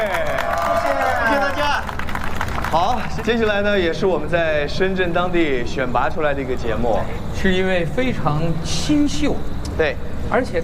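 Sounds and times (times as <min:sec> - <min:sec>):
audience applause for a live band at a stage show in Shenzhen: 0:00.0 - 0:03.6
speech: 0:02.7 - 0:10.6.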